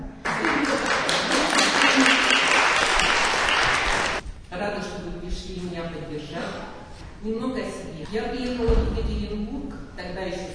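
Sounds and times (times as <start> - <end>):
audience applause: 0.2 - 4.2
speech: 7.2 - 10.5.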